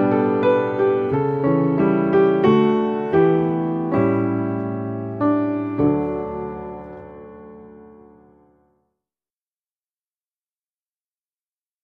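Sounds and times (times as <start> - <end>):
music: 0.0 - 9.1.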